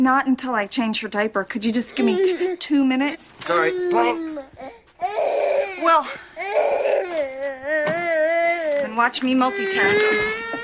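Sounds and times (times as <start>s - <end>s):
speech: 0.0s - 4.3s, 5.0s - 8.0s, 9.0s - 10.5s
baby crying: 3.5s - 10.6s.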